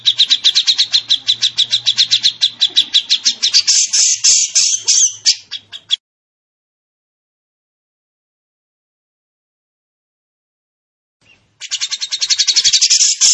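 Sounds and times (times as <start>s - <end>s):
training bird song with rapid high rattling notes and buzzy trills: 0.0s - 6.0s, 11.2s - 13.3s.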